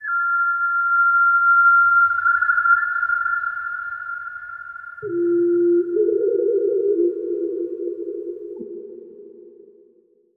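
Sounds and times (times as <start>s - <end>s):
whistles: 0.0s - 7.2s.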